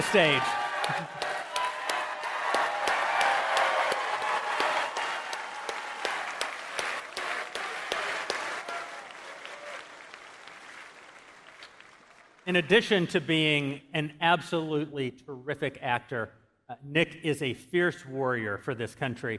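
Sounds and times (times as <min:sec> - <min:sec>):
speech: 0:00.0 - 0:01.2, 0:12.5 - 0:19.3
audience clapping: 0:00.0 - 0:13.1.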